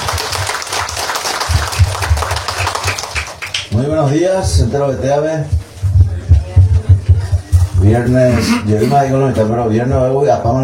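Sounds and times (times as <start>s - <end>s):
crowd applauding: 0.0s - 3.8s
speech: 3.8s - 5.6s, 7.8s - 10.6s
heavy low thumps: 4.4s - 9.0s.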